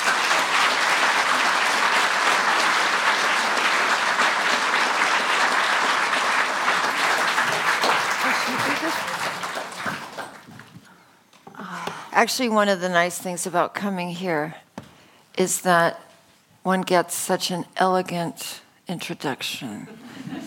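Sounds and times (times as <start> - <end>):
audience applause welcoming speakers at the House of Literature: 0.0 - 10.8
speech: 12.2 - 14.6, 15.4 - 16.0, 16.6 - 20.4.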